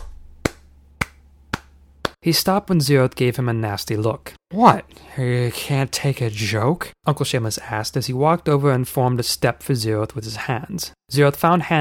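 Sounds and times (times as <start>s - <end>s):
hands clapping: 0.0s - 2.2s
speech: 2.2s - 11.7s.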